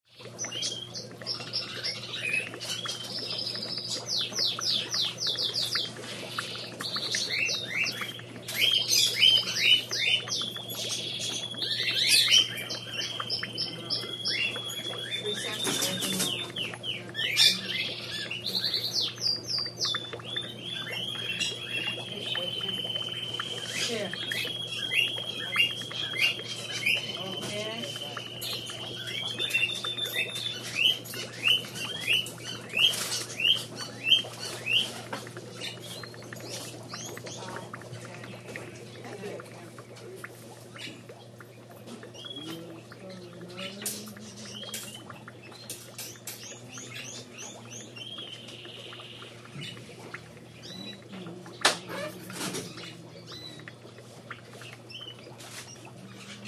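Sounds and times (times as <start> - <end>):
aquarium water: 0.0 - 56.4
pet shop birds: 0.0 - 56.4.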